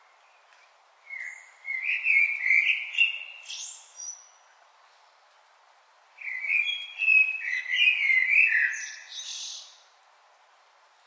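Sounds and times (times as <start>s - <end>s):
common blackbird Turdus merula singing: 1.1s - 4.4s, 6.2s - 9.8s.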